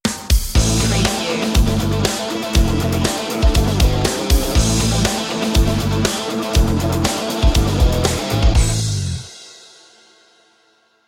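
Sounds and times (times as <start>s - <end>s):
big machines stinger: 0.6s - 8.9s.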